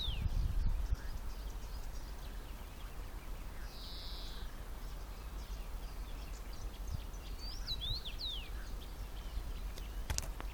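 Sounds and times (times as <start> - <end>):
common rosefinch calls with short curving whistled notes: 0.0 - 10.0.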